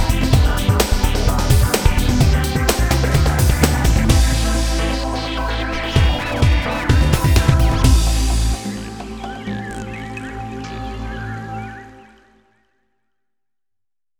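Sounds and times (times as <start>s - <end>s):
breakbeat drums: 0.0s - 10.0s.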